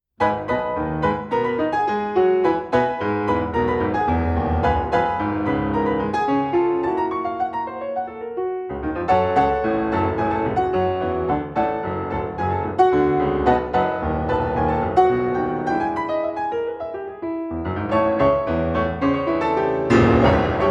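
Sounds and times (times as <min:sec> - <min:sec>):
rag in G-sharp minor: 0:00.2 - 0:20.6.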